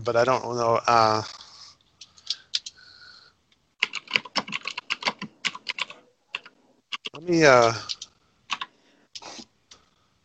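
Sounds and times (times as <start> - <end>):
speech: 0.0 - 1.4, 7.2 - 8.0
computer keyboard keystrokes: 3.8 - 8.7.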